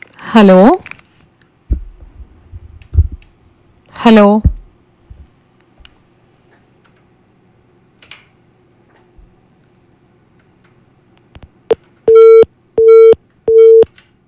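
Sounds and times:
speech: 0:00.4 - 0:00.8, 0:04.1 - 0:04.5
telephone disconnect tone after a cut-off call: 0:12.1 - 0:13.9.

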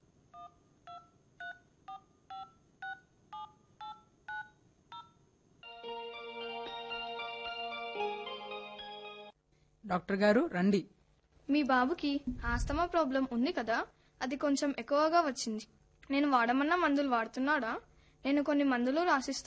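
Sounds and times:
two-tone telephone keypad beeps: 0:00.4 - 0:05.2
speech: 0:09.9 - 0:19.4.

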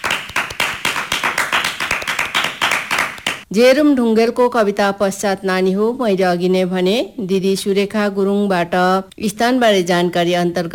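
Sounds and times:
children clapping loudly after a poem recital: 0:00.0 - 0:03.4
speech: 0:03.5 - 0:10.7.

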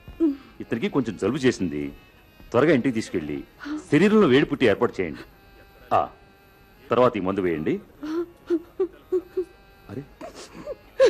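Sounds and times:
woman crying in distress with her sick child at a doctor's: 0:00.0 - 0:00.6, 0:03.6 - 0:04.0, 0:08.0 - 0:11.0
speech: 0:00.7 - 0:06.2, 0:06.9 - 0:08.1.

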